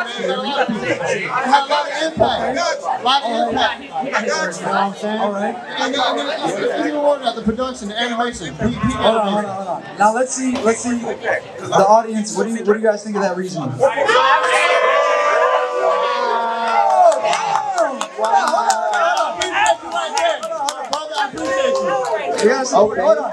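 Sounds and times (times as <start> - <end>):
laughter: 0.0 - 2.6
speech: 0.2 - 14.7, 22.4 - 23.3
audience cheering: 14.0 - 22.7.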